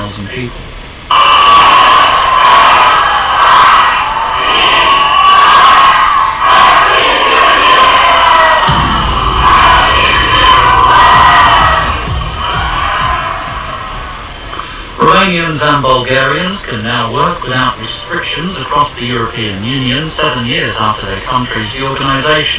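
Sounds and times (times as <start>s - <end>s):
speech: 0.1s - 0.7s, 15.3s - 22.5s
huge crowd cheering at New Year fireworks in Hong Kong: 1.1s - 22.5s
deep rumble: 8.6s - 15.6s.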